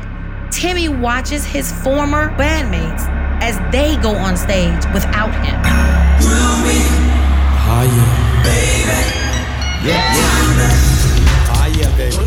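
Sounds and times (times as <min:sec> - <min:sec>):
speech: 0:00.6 - 0:06.9, 0:07.8 - 0:09.2, 0:09.8 - 0:10.9, 0:12.0 - 0:12.2
huge concert crowd roaring and cheering: 0:02.9 - 0:12.2.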